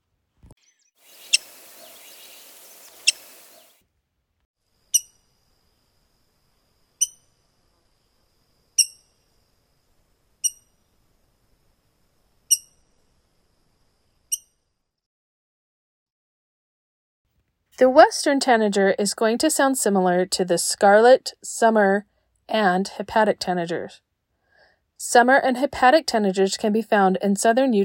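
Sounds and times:
rose-breasted grosbeak call, sharp squeak: 1.0s - 3.8s
soft hiss: 1.0s - 3.8s
speech: 17.8s - 24.0s, 25.0s - 27.8s.

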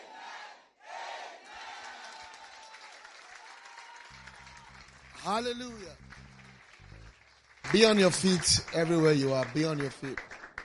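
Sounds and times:
audience clapping: 1.5s - 10.6s
speech: 5.2s - 6.2s, 7.7s - 10.3s.

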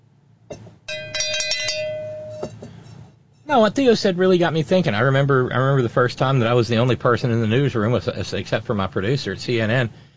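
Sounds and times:
cowbell: 0.9s - 2.6s
speech: 3.5s - 10.1s.

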